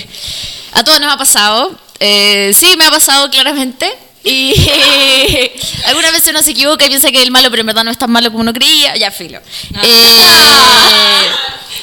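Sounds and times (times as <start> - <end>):
speech: 0.8 - 11.6
scream: 9.9 - 11.5.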